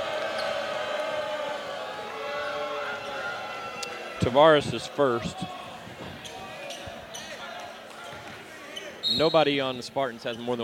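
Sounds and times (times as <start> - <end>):
basketball arena crowd roaring in reaction to foul: 0.0 - 6.0
speech: 4.2 - 5.6, 9.1 - 10.6.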